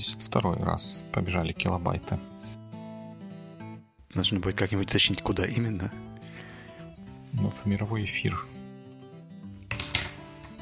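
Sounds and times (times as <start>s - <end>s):
speech: 0.0s - 2.4s, 4.2s - 6.0s, 7.4s - 8.6s
pen dropping: 9.6s - 10.6s.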